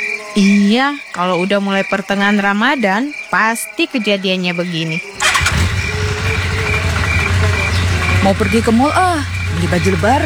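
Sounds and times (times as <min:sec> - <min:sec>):
speech: 0:00.4 - 0:05.2, 0:08.2 - 0:10.2
motorcycle engine idling: 0:05.2 - 0:10.2.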